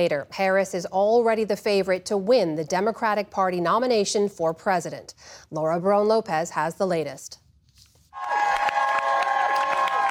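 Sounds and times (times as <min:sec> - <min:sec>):
speech: 0:00.0 - 0:07.4
crowd applauding and cheering at campaign office in Wilmington, Delaware: 0:08.2 - 0:10.0.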